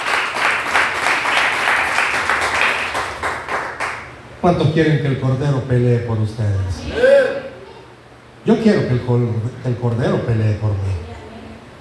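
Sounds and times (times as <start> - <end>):
audience applauding: 0.0 - 4.1
speech: 4.4 - 7.0, 8.4 - 11.0.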